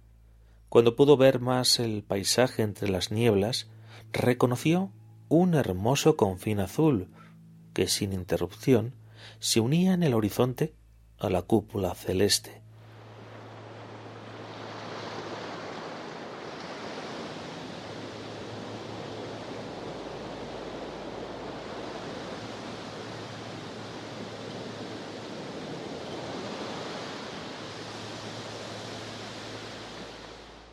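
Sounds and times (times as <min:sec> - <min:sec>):
speech: 0:00.7 - 0:07.2, 0:07.8 - 0:12.6
ocean waves and surf: 0:12.7 - 0:30.7.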